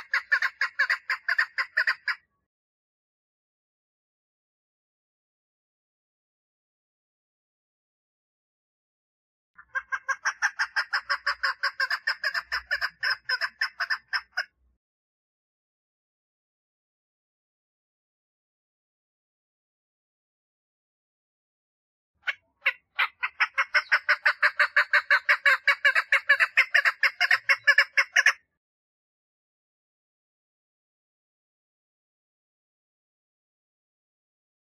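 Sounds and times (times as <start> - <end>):
partridge singing rasping notes: 0.0 - 2.2, 9.6 - 14.4, 22.2 - 28.4.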